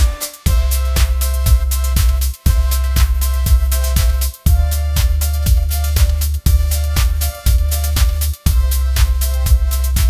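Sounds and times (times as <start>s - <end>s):
upbeat pop melody ringtone: 0.0s - 10.0s.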